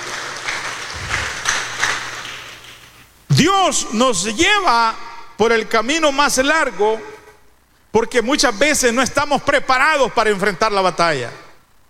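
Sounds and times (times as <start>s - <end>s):
audience applause: 0.0s - 3.0s
speech: 3.4s - 7.1s, 7.9s - 11.4s.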